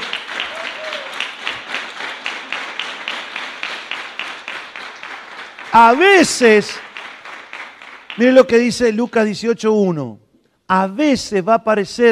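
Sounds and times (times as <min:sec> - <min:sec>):
audience applauding: 0:00.0 - 0:08.7
speech: 0:05.8 - 0:06.9, 0:08.2 - 0:12.0.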